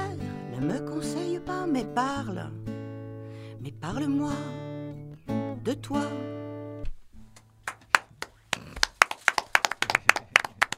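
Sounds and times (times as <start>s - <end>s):
speech: 0.6s - 2.7s, 3.6s - 4.7s, 5.3s - 6.4s
audience applause: 7.7s - 10.7s.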